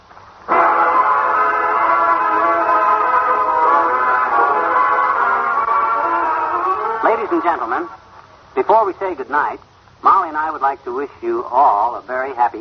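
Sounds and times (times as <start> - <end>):
train passing: 0.0 - 11.9
train whistle: 0.5 - 7.1
speech: 7.3 - 8.0, 8.6 - 12.5.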